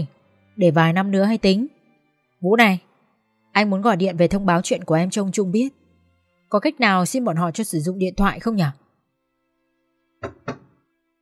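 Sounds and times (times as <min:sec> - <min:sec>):
speech: 0:00.0 - 0:01.8, 0:02.4 - 0:02.9, 0:03.5 - 0:05.8, 0:06.5 - 0:08.8
knocking on a door: 0:10.2 - 0:10.8.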